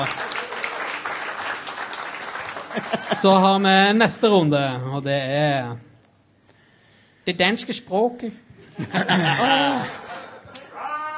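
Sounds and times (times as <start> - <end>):
speech: 0.0 - 0.2, 3.2 - 5.9, 7.2 - 10.0
crowd clapping: 0.0 - 4.1
laughter: 2.6 - 3.5, 8.7 - 11.1.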